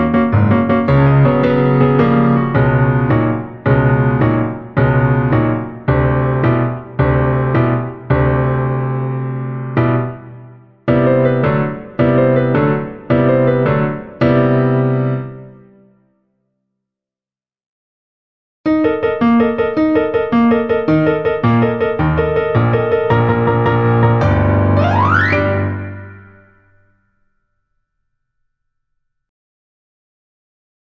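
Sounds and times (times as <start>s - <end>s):
musical accompaniment: 0.0s - 15.6s, 18.7s - 26.8s.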